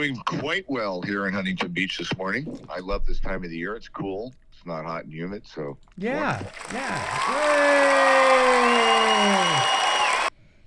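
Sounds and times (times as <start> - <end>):
speech: 0.0 - 9.8
applause: 6.3 - 10.3.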